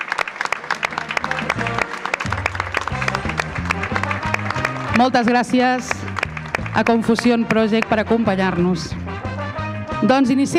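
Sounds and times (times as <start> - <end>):
audience applause: 0.0 - 7.9
speech: 5.0 - 6.0, 6.8 - 9.0, 10.0 - 10.5.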